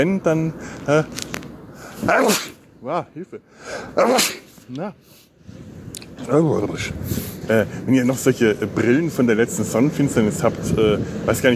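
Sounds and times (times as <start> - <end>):
speech: 0.0 - 1.3, 2.0 - 5.6, 6.2 - 11.5
loud sneezes: 1.9 - 2.6, 3.8 - 4.6.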